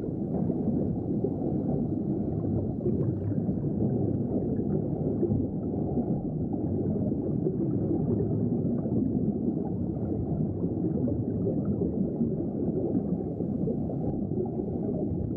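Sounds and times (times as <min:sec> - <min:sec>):
underwater ambience: 0:00.0 - 0:15.3.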